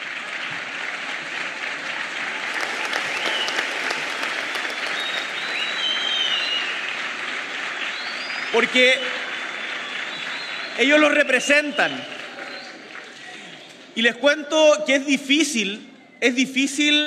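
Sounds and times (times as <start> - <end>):
audience applause: 0.0 - 10.8
speech: 8.6 - 9.2, 10.8 - 12.1, 14.0 - 17.0.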